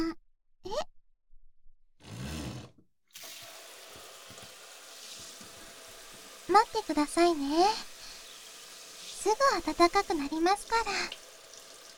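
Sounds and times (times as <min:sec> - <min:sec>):
shower water running: 0:03.2 - 0:11.9
speech: 0:06.6 - 0:07.9, 0:09.2 - 0:11.2.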